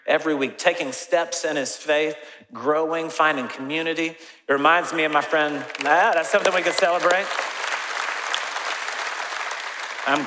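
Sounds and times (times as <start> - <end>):
speech: 0.1 - 7.5, 10.1 - 10.2
delayed audience applause: 5.6 - 10.2.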